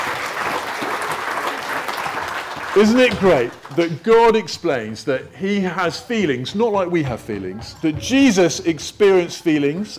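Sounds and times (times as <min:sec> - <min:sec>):
round of applause: 0:00.0 - 0:03.9
speech: 0:02.8 - 0:09.9.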